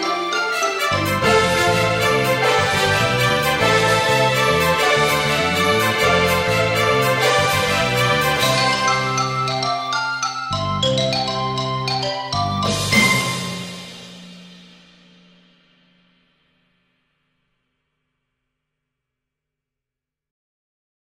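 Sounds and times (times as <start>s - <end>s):
philharmonic orchestra playing instrumental film music: 0.0s - 14.7s.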